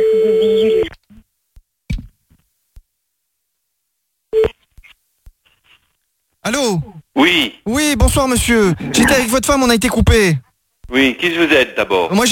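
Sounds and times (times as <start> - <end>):
telephone tone while redialing to call someone back: 0.0 - 0.9
speech: 7.3 - 12.2.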